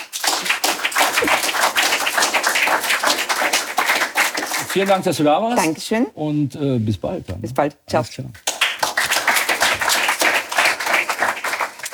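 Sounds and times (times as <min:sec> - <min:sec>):
audience applause: 0:00.0 - 0:05.0, 0:08.5 - 0:11.9
speech: 0:04.8 - 0:08.4.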